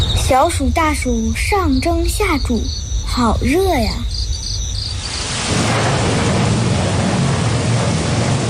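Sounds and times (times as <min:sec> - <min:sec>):
speech: 0:00.3 - 0:04.2
thunder: 0:04.1 - 0:08.4
rain: 0:05.0 - 0:08.4.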